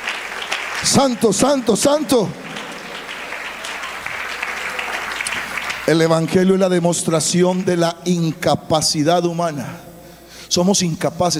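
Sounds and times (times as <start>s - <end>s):
audience applause: 0.0s - 6.6s
speech: 0.8s - 2.4s, 5.9s - 9.9s, 10.5s - 11.3s.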